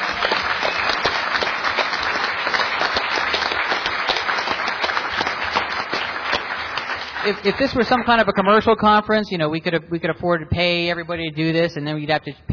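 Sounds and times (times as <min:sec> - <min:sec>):
audience round of applause: 0:00.0 - 0:08.6
speech: 0:07.3 - 0:12.5.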